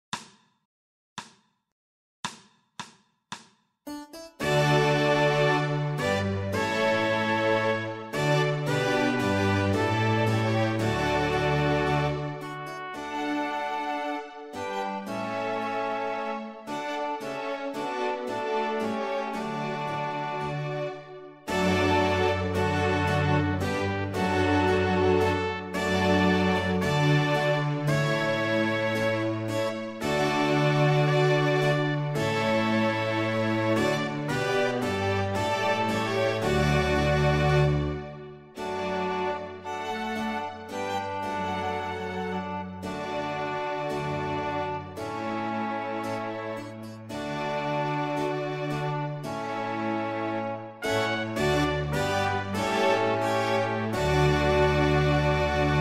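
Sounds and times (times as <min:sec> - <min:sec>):
musical accompaniment only: 0:03.9 - 0:55.8.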